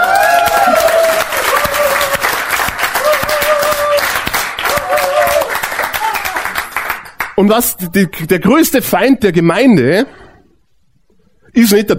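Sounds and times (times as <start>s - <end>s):
audience applause: 0.0s - 7.4s
speech: 7.5s - 10.2s, 11.6s - 11.9s.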